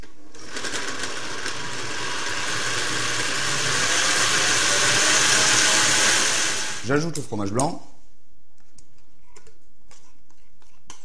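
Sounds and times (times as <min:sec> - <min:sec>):
electric blender mixing ingredients: 0:00.2 - 0:06.9
speech: 0:06.9 - 0:07.9.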